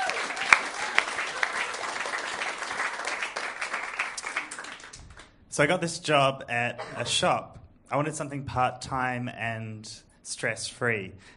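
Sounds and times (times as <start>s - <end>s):
audience applause: 0.0s - 5.3s
speech: 5.6s - 11.3s.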